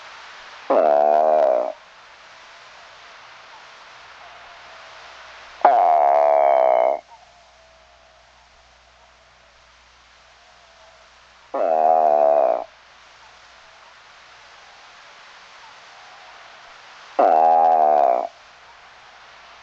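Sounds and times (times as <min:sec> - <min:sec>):
Eastern spadefoot calling with nasal buzzy groans: 0:00.6 - 0:01.8, 0:05.6 - 0:09.4, 0:10.4 - 0:12.8, 0:15.9 - 0:18.4.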